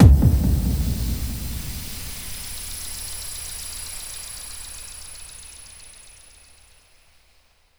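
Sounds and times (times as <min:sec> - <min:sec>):
fall hits and falls: 0:00.0 - 0:02.8.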